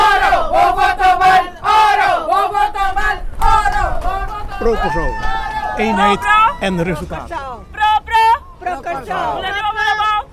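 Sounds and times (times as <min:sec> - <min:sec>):
crowd shouting in chant-like bursts outside a polling station: 0:00.0 - 0:10.3
speech: 0:05.8 - 0:07.4.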